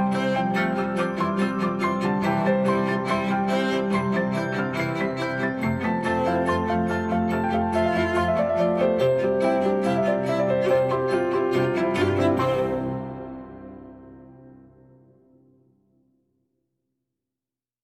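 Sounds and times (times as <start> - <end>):
piano instrumental music: 0.0 - 15.6.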